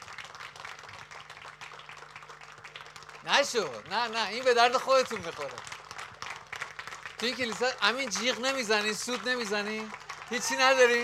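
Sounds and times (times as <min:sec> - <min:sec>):
audience clapping in a church: 0:00.0 - 0:11.0
speech: 0:03.2 - 0:05.7, 0:07.2 - 0:11.0.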